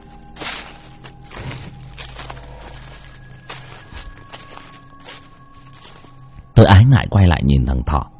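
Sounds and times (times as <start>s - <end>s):
rustling footsteps: 0.0s - 6.5s
speech: 6.6s - 8.1s.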